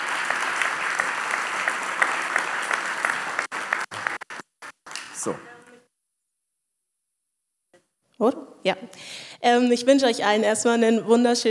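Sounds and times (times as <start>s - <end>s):
audience applause: 0.0s - 5.4s
speech: 5.2s - 5.5s, 8.2s - 11.4s.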